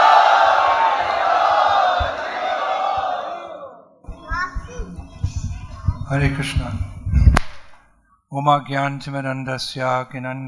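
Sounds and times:
crowd chanting at a Hare Krishna gathering: 0.0 - 5.9
scattered voices: 0.3 - 7.3
speech: 6.1 - 6.9, 8.3 - 10.4.

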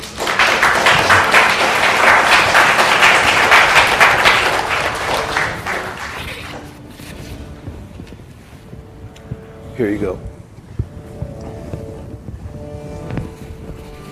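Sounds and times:
audience applauding musicians from Santa Clara County: 0.0 - 6.8
speech: 9.8 - 10.3.

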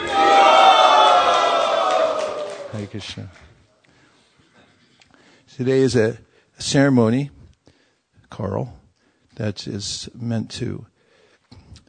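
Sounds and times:
crowd cheering for Wales: 0.0 - 3.4
speech: 3.0 - 3.5, 5.6 - 7.4, 8.3 - 8.8, 9.4 - 10.9.

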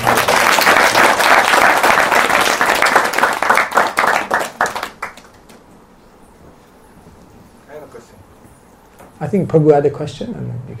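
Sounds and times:
audience applause: 0.0 - 5.7
speech: 9.3 - 10.7.

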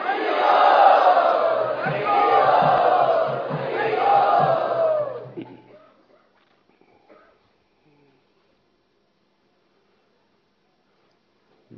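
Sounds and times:
crowd chanting to welcome special guests at a gathering: 0.0 - 5.8.

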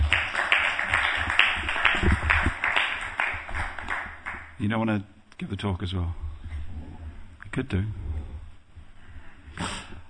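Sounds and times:
audience applause: 0.0 - 4.5
speech: 4.6 - 6.2, 7.6 - 8.0.

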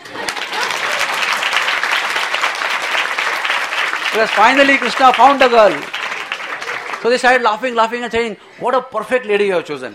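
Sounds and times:
audience clapping: 0.0 - 7.7
speech: 4.2 - 5.9, 7.0 - 9.9.

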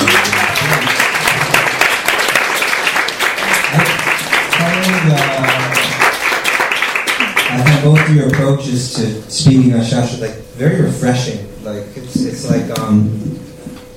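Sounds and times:
applause: 0.0 - 8.6
speech: 7.8 - 13.5.

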